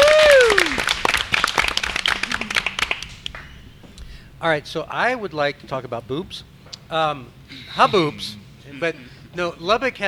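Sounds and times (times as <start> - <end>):
falling whoop: 0.0 - 0.9
round of applause from a group: 0.0 - 3.5
speech: 4.4 - 10.0.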